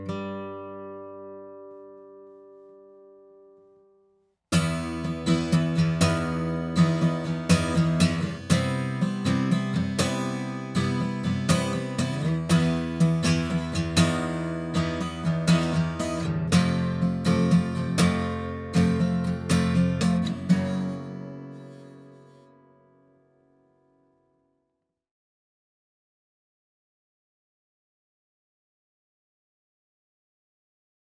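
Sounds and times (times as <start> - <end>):
Gibson Hummingbird guitar: 0.0 - 24.5.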